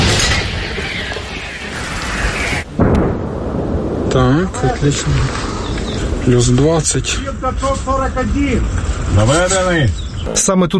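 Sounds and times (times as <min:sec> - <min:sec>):
Ukrainian artillery gun firing a shot: 0:00.0 - 0:04.2
speech: 0:04.2 - 0:05.5, 0:06.3 - 0:10.7.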